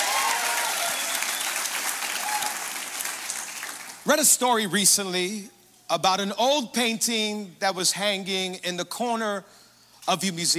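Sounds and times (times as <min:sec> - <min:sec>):
church congregation applauding at an Easter 2022 service: 0:00.0 - 0:04.3
speech: 0:04.1 - 0:10.5.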